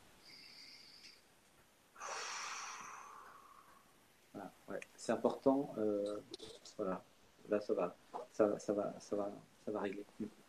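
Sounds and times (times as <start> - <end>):
deep breath: 0.2 - 1.2, 2.0 - 4.0
speech: 4.7 - 10.4.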